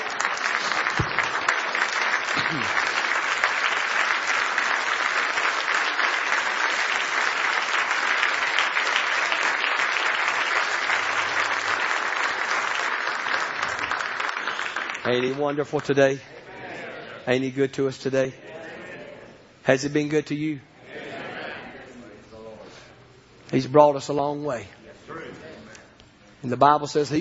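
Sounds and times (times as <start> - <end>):
church congregation clapping in praise: 0.0 - 16.2
speech: 2.5 - 2.8, 15.1 - 16.4, 17.3 - 18.4, 19.7 - 20.7, 23.5 - 24.8, 26.4 - 27.1.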